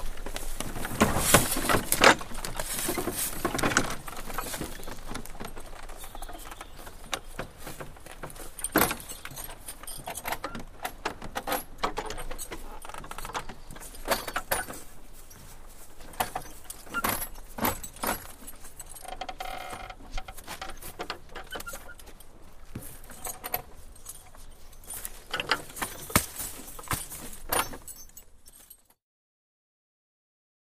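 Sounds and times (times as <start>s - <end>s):
carriage idling and driving: 0.0s - 28.8s.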